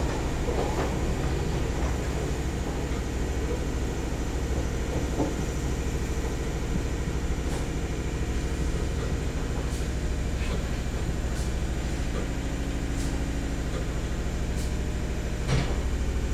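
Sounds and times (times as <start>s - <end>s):
subway train in London: 0.0s - 16.3s.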